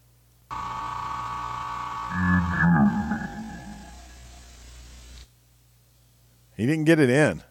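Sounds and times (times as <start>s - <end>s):
quiz show buzzer long electronic drone: 0.5s - 4.5s
speech: 2.9s - 3.3s, 6.6s - 7.4s.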